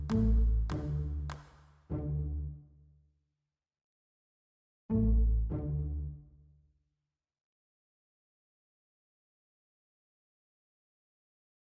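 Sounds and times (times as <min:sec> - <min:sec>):
clap: 0:00.0 - 0:01.9
bass: 0:00.0 - 0:02.7, 0:04.9 - 0:06.4
cello pizzicato: 0:00.0 - 0:02.8, 0:04.9 - 0:06.4.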